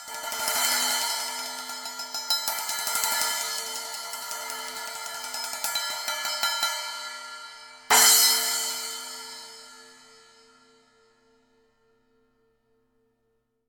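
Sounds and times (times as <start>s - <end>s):
Sound Formula Reflector 10 splash cymbal: 0.0s - 10.6s.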